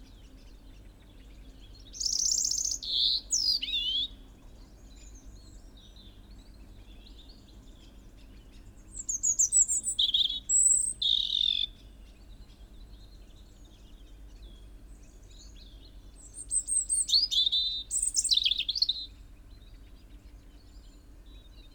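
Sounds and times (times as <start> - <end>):
European robin singing: 0.0 - 21.7.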